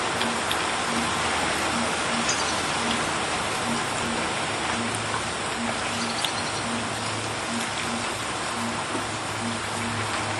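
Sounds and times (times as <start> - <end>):
rain falling in a small village in Mayenne: 0.0 - 10.3.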